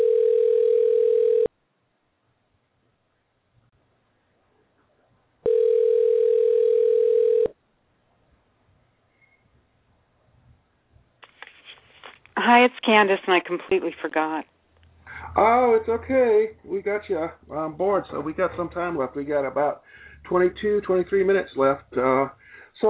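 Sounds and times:
steady mid-pitched telephone tones while dialing out: 0.0s - 1.5s, 5.4s - 7.6s
faint scattered clicks and handling noise: 11.2s - 12.4s
speech: 12.6s - 14.5s, 15.4s - 22.8s.

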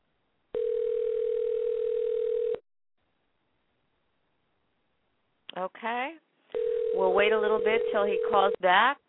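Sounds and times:
telephone dial tone: 0.6s - 2.6s, 6.6s - 8.6s
speech: 5.6s - 6.2s, 7.0s - 9.0s.

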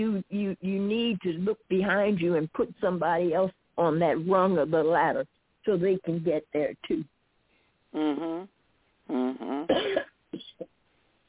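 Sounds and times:
speech: 0.0s - 7.2s, 7.9s - 10.7s
throat clearing: 9.1s - 10.7s.

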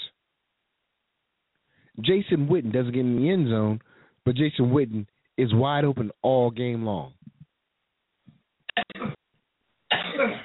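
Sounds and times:
speech: 2.0s - 7.2s
person coughing from a lingering cold: 8.7s - 9.2s, 9.9s - 10.4s.

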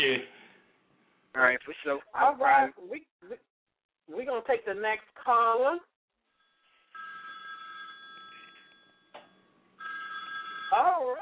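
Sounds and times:
speech: 1.4s - 3.5s, 4.1s - 5.9s, 10.7s - 11.2s
phone ringing: 6.4s - 11.2s.

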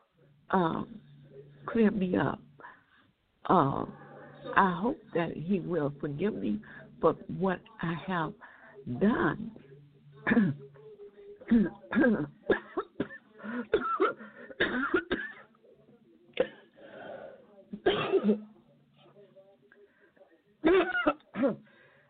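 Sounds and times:
speech: 0.5s - 2.5s, 3.5s - 9.6s, 10.2s - 10.7s, 11.5s - 12.6s, 13.6s - 15.1s, 17.8s - 18.5s, 20.6s - 21.7s
person coughing: 10.3s - 10.7s, 11.5s - 15.5s, 17.8s - 18.4s, 20.7s - 21.6s.

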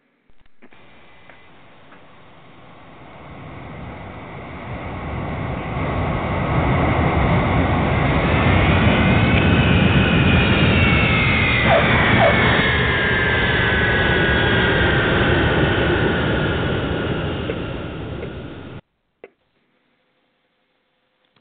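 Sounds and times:
Eastern jet airliner landing on runway 27 right: 0.2s - 18.8s.

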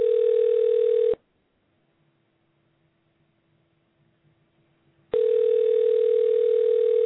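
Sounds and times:
telephone ringback tone on an outgoing call: 0.0s - 1.2s, 5.1s - 7.0s.

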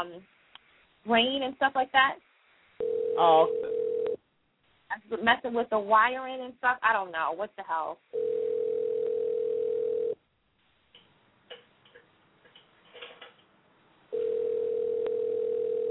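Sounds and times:
speech: 0.0s - 0.4s, 1.0s - 3.7s, 4.9s - 8.4s
telephone ringback tone: 2.8s - 4.2s, 8.2s - 10.2s, 14.1s - 15.8s.

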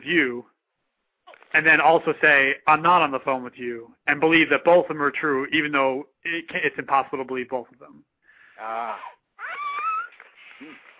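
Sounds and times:
speech: 0.0s - 0.5s, 1.5s - 9.1s
child making noises in another room: 8.6s - 10.2s.

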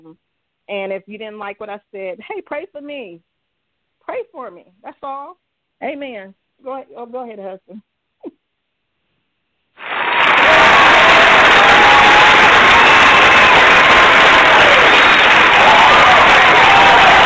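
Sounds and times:
speech: 0.0s - 3.3s, 4.1s - 8.4s
applause: 9.8s - 17.2s.

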